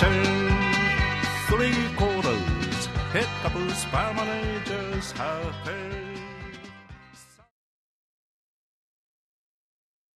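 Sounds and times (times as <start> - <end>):
vocal: 0.0 - 7.5.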